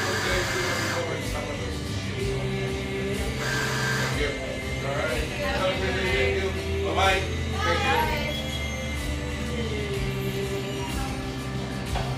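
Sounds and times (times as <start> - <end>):
overlapping voices chattering in a drip coffee café in eastern Seattle: 0.0 - 11.7.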